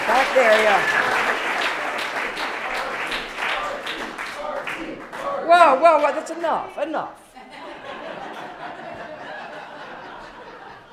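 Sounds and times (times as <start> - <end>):
audience applause: 0.0 - 5.4
laughter: 0.1 - 3.0, 7.4 - 10.9
speech: 0.4 - 1.4, 5.5 - 7.2.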